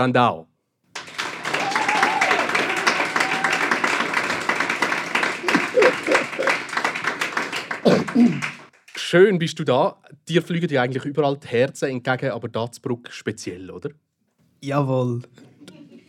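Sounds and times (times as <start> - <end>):
speech: 0.0 - 0.5, 7.8 - 8.5, 9.1 - 14.0, 14.6 - 15.5
crowd applause for arriving guest: 0.9 - 9.0
laughter: 5.2 - 6.9, 15.5 - 16.0.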